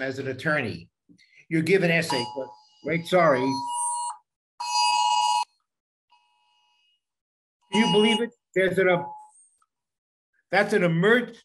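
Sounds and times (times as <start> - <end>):
speech: 0.0 - 3.8, 7.7 - 9.2, 10.5 - 11.4
cell phone alert tone: 2.1 - 5.0, 7.7 - 8.3.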